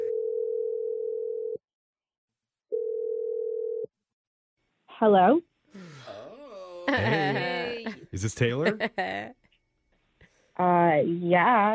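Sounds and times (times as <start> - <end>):
telephone tone as a call is placed: 0.0 - 1.6, 2.7 - 3.9
speech: 5.0 - 5.5, 6.9 - 7.4, 8.2 - 9.4, 10.6 - 11.7
laughter: 6.6 - 9.3.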